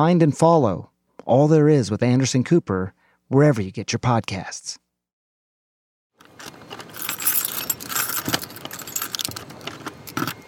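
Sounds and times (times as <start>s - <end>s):
speech: 0.0s - 4.8s
keys unlocking a heavy apartment door: 6.2s - 10.4s.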